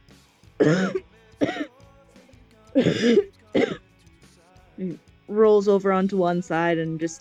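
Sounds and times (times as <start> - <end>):
speech: 0.6 - 1.6, 2.8 - 3.3, 4.8 - 7.2
violent coughing, hacking up: 0.6 - 1.7, 2.8 - 3.8.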